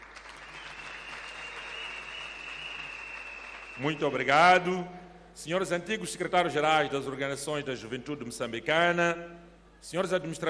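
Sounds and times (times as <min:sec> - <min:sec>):
audience applause: 0:00.0 - 0:04.0
speech: 0:03.8 - 0:10.4.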